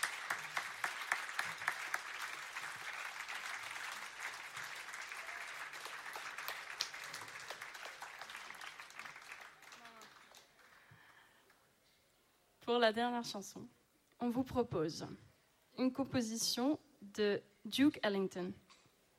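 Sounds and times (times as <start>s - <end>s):
audience applause for volunteers: 0.0s - 11.5s
speech: 12.7s - 18.6s.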